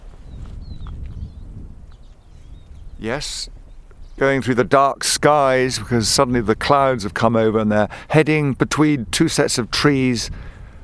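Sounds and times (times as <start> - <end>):
siskins calling as they fly over: 0.0 - 6.2
speech: 3.0 - 3.6, 4.2 - 10.5.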